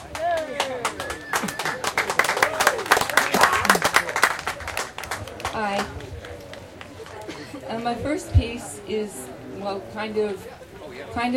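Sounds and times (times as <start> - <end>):
people cheering: 0.0 - 7.3
audience applause: 0.0 - 7.4
speech: 7.8 - 11.3.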